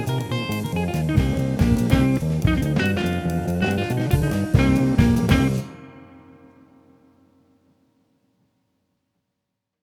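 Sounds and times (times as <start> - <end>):
jazz played in a studio: 0.0 - 6.8.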